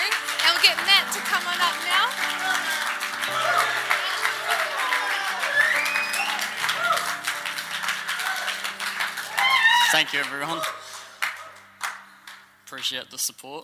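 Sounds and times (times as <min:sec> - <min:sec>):
crowd applauding: 0:00.0 - 0:12.9
scattered voices and whoops: 0:02.5 - 0:07.2, 0:09.3 - 0:10.8
speech: 0:09.9 - 0:10.8, 0:12.7 - 0:13.6.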